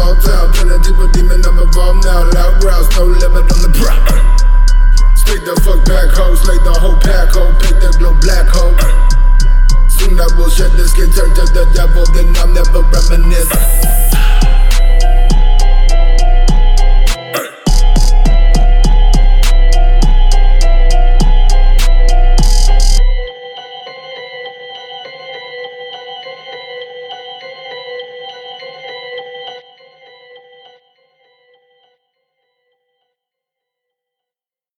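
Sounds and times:
low bass tone: 0:00.0 - 0:23.3.

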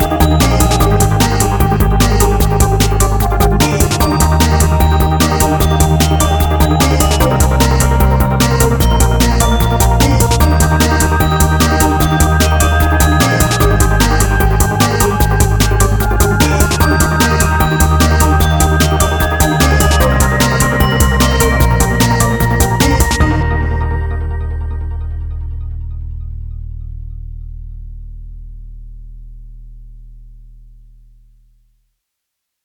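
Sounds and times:
bells chiming: 0:00.0 - 0:25.1.

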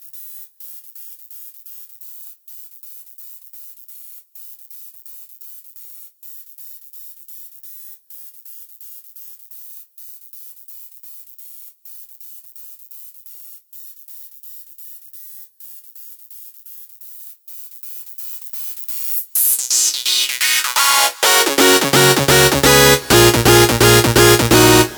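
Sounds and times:
analog synth bass lead: 0:19.4 - 0:24.9.

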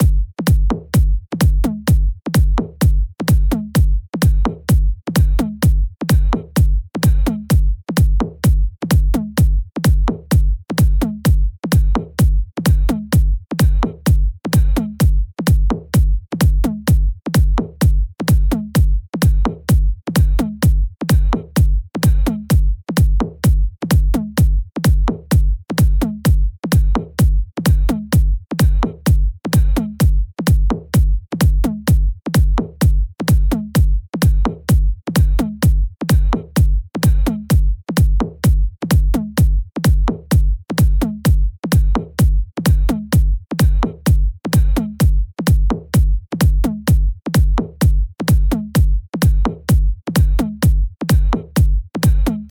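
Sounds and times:
percussion loop at 128 BPM: 0:00.0 - 0:52.4.

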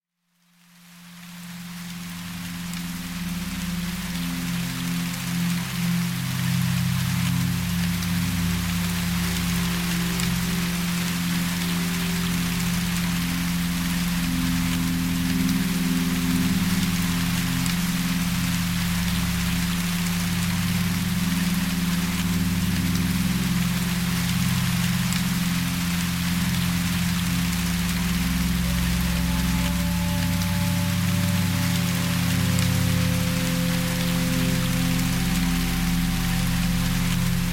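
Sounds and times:
soft rain: 0:00.0 - 0:37.5
174 Hz Solfeggio frequency tone: 0:26.6 - 0:37.5.

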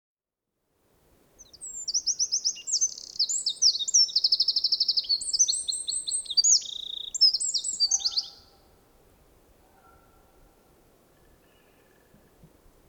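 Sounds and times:
Eurasian wren trilling song: 0:01.4 - 0:08.6.

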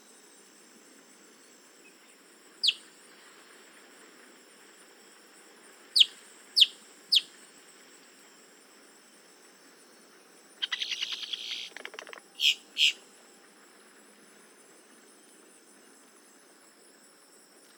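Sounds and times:
boat-tailed grackle Quiscalus major calls: 0:10.6 - 0:13.0.

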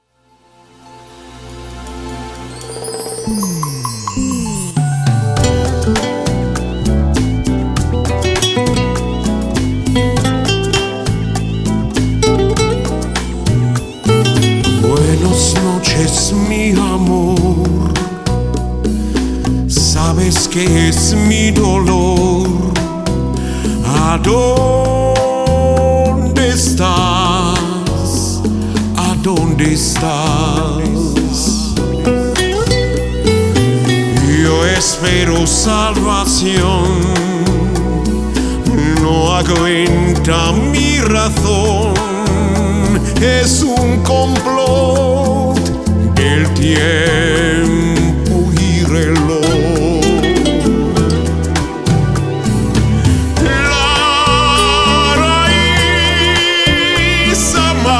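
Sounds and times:
rumba music: 0:00.6 - 0:57.9.

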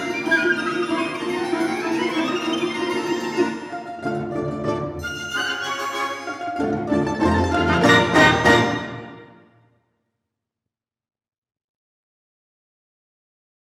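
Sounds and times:
Russian folk orchestra playing: 0:00.0 - 0:09.5.

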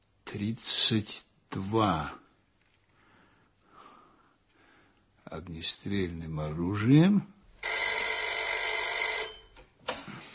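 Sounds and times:
speech: 0:00.3 - 0:02.2, 0:05.3 - 0:07.4
telephone bell ringing in a detective drama: 0:07.6 - 0:09.6.

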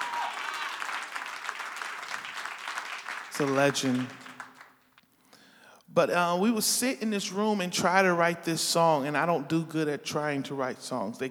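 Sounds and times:
audience applause: 0:00.0 - 0:04.8
speech: 0:03.4 - 0:04.2, 0:06.0 - 0:11.2.

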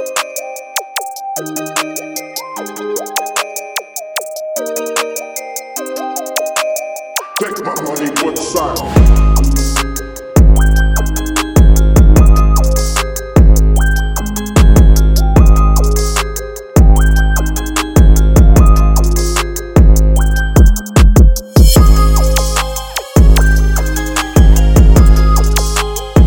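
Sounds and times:
trap beat in G major: 0:07.2 - 0:26.2.

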